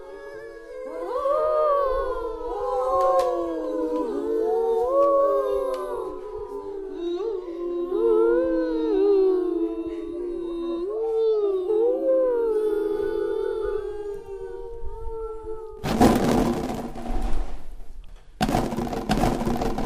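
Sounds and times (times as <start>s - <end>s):
ghosts humming a spooky song: 0.0s - 15.8s
loud bursts of rushing noise: 15.8s - 19.8s.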